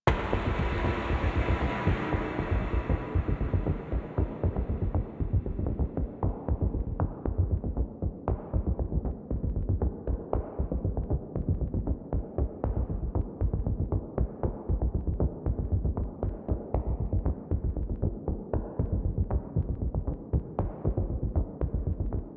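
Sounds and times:
heavy blades bass: 0.0s - 22.2s.

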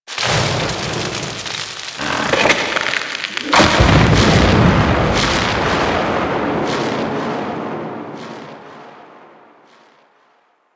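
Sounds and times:
distant tree falling in a forest: 0.1s - 8.1s.

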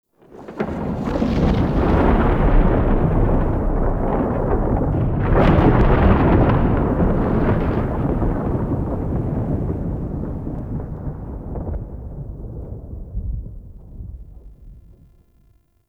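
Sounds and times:
rolling thunder murmur outdoors: 0.2s - 15.5s.

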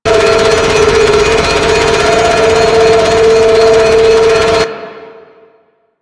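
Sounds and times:
space power cell spinning: 0.1s - 4.7s.

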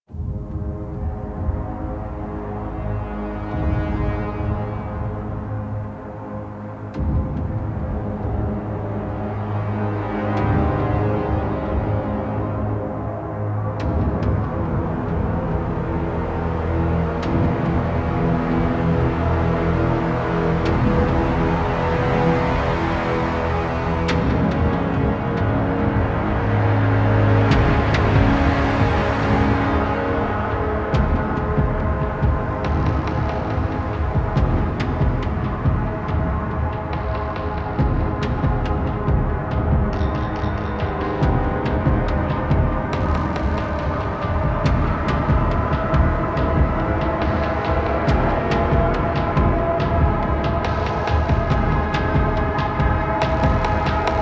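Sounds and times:
ambient music: 0.0s - 54.1s.

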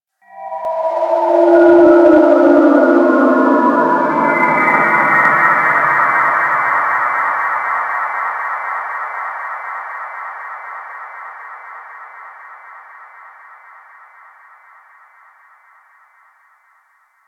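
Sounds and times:
ambience: 0.2s - 8.2s.

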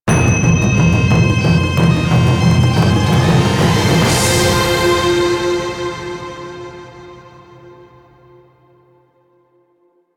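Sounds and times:
match end music: 0.1s - 7.7s.

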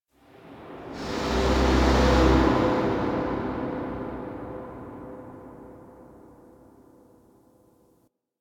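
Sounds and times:
drill blast: 0.9s - 6.7s.

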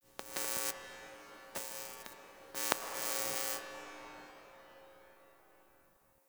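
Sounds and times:
fluorescent light flickering: 0.2s - 0.8s, 1.6s - 3.6s.

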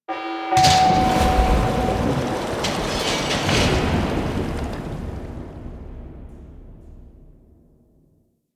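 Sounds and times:
forest water drain: 0.6s - 6.5s.

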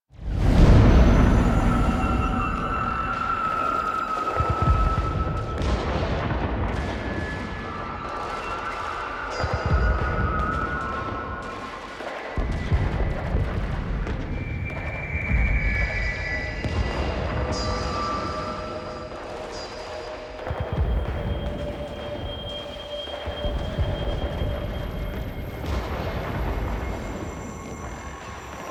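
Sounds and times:
ambience: 0.1s - 28.6s.

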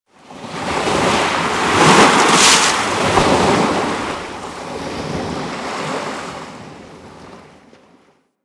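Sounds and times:
ocean wave crashing: 1.2s - 6.7s.

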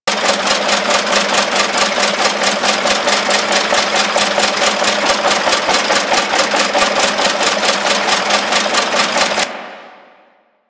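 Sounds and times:
small machine running in a settlement: 0.0s - 10.0s.

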